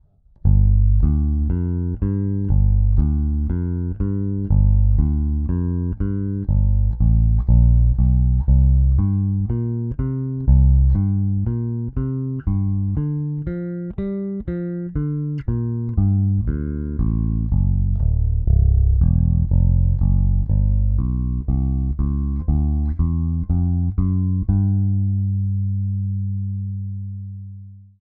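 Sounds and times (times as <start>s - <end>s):
AER amp bass boosted voice counting: 0.5s - 13.6s, 15.0s - 27.3s.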